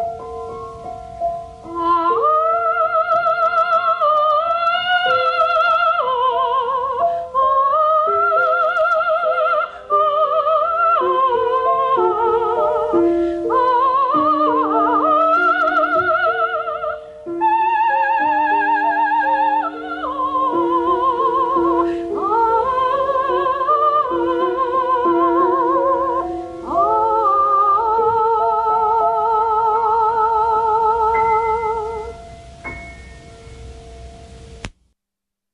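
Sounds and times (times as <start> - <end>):
Ukrainian art song: 0.0 - 34.9.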